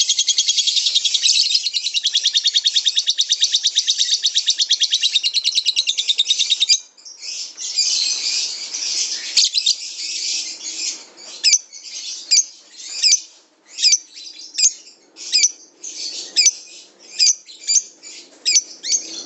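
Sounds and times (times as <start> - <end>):
lovebird song: 0.0 - 19.2.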